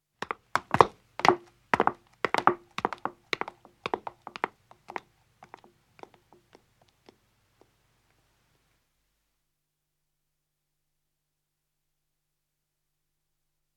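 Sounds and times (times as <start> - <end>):
two women's footsteps descending stone: 0.2 - 6.2.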